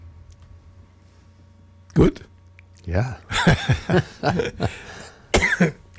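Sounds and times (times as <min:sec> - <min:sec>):
speech: 0:02.0 - 0:02.3, 0:02.9 - 0:05.0, 0:05.6 - 0:05.8
laughter: 0:03.3 - 0:05.8
person coughing after Danish pastry went the wrong way: 0:04.4 - 0:05.8.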